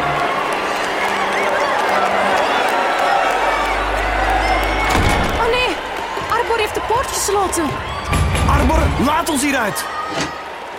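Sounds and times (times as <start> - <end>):
crowd of goblins shouting and cheering enthusiastically: 0.0 - 10.7
low rumble: 3.3 - 6.8
speech: 7.3 - 10.7.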